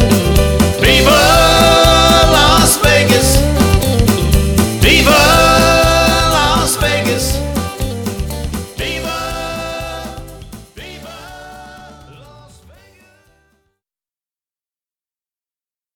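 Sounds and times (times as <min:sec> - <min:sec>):
classic rock band playing: 0:00.0 - 0:12.1.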